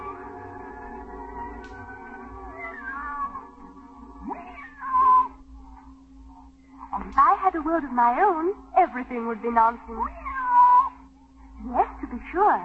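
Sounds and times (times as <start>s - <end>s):
cat meowing: 2.4s - 3.5s, 4.2s - 5.4s, 10.1s - 11.0s
speech: 7.5s - 10.2s, 11.6s - 12.6s.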